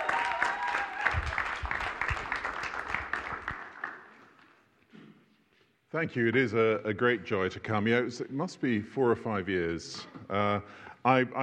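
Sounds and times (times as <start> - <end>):
church prayer meeting congregation applause welcoming a guest speaker: 0.0 - 4.4
speech: 6.0 - 11.4.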